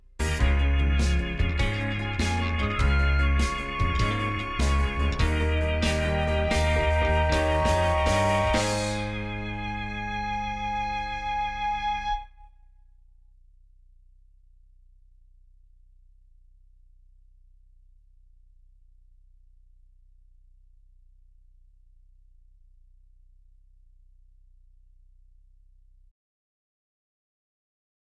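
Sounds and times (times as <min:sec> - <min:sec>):
musical accompaniment: 0:00.2 - 0:12.3.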